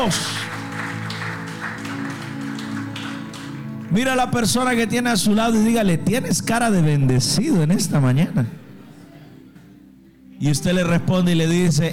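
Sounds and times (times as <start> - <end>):
speech: 0.0 - 0.5, 3.9 - 8.6, 10.4 - 11.9
audience clapping in a steady rhythm: 0.0 - 4.2
sustained music: 0.0 - 11.9.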